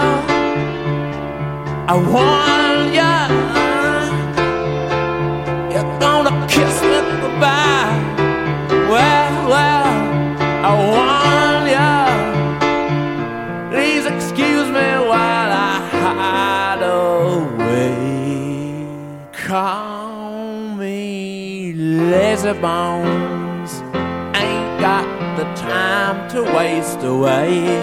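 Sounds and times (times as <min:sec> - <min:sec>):
piano: 0:00.0 - 0:27.8.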